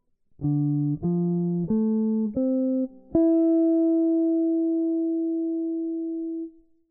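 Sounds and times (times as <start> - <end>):
jazz guitar improvisation: 0.4 - 6.6.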